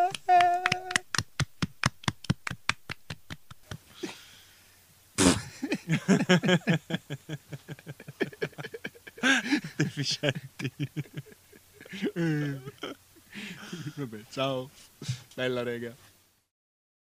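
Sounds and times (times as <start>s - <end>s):
applause, hands clapping: 0.0s - 3.8s
laughter: 5.2s - 14.2s
speech: 5.9s - 8.3s, 9.2s - 11.2s, 12.0s - 12.7s, 14.0s - 16.1s.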